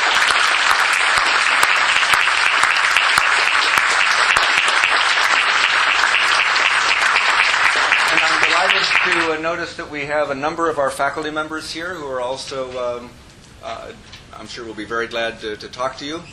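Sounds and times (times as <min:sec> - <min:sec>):
audience applause: 0:00.0 - 0:09.4
speech: 0:09.4 - 0:16.3.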